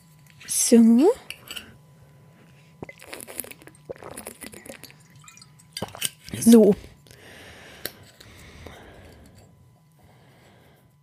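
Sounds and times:
speech: 0:00.5 - 0:01.3, 0:06.4 - 0:06.9
liquid slurps of someone sipping a drink: 0:02.8 - 0:06.2.

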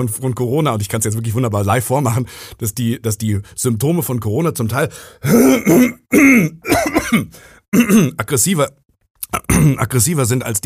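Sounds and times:
speech: 0:00.0 - 0:10.6
person clearing throat in harsh coughing bursts: 0:05.3 - 0:08.2, 0:09.3 - 0:09.8.

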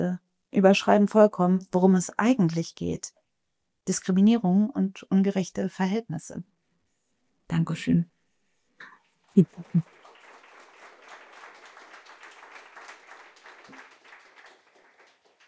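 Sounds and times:
speech: 0:00.0 - 0:03.2, 0:03.8 - 0:06.5, 0:07.5 - 0:08.1, 0:08.8 - 0:10.0
audience applause in a room: 0:09.4 - 0:15.4.

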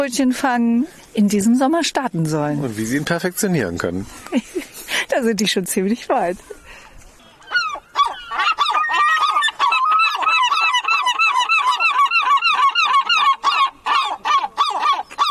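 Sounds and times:
speech: 0:00.0 - 0:04.5, 0:05.2 - 0:06.6
seagulls calling: 0:06.4 - 0:15.2.

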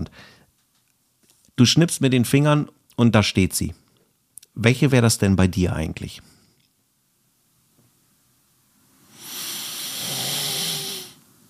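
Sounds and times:
heavy breathing in and out: 0:00.1 - 0:00.5, 0:09.1 - 0:11.2
speech: 0:01.6 - 0:03.8, 0:04.6 - 0:06.4.

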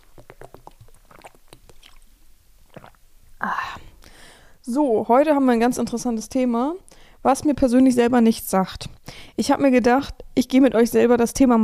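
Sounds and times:
person drinking a sip of water: 0:00.0 - 0:04.2
speech: 0:04.7 - 0:11.6.

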